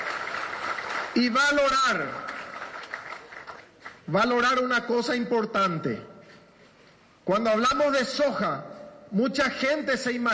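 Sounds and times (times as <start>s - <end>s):
crowd applause: 0.0s - 4.0s
speech: 1.2s - 2.4s, 4.1s - 6.1s, 7.3s - 10.3s.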